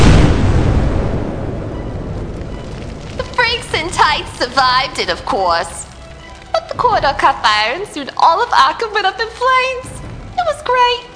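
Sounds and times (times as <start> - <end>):
explosives planted in a corridor exploding: 0.0 - 5.0
speech: 4.4 - 5.8, 6.8 - 11.1.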